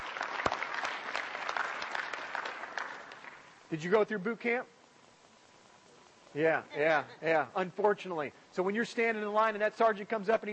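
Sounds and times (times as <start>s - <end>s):
audience applause: 0.0s - 3.5s
speech: 3.7s - 4.8s, 6.3s - 10.5s.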